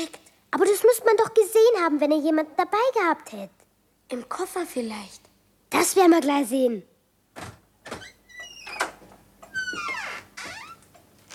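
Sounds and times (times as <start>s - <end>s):
speech: 0.0s - 8.0s
door eased quietly shut: 7.4s - 10.7s
squeaky door hinge creaking: 7.9s - 11.3s.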